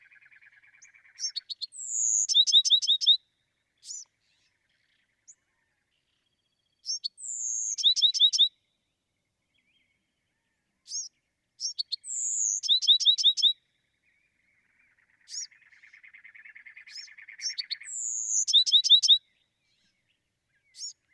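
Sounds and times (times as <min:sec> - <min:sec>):
Bewick's wren singing: 0:00.0 - 0:03.2, 0:06.8 - 0:08.5, 0:10.9 - 0:13.6, 0:14.6 - 0:19.3, 0:20.6 - 0:21.1.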